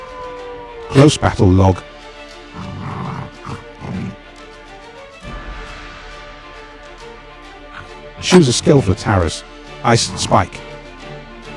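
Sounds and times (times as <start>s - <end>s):
video game wolf growling and snarling in a bite attack: 0.3s - 4.5s, 7.6s - 8.3s, 9.8s - 10.6s
speech: 0.9s - 1.9s, 8.3s - 10.7s.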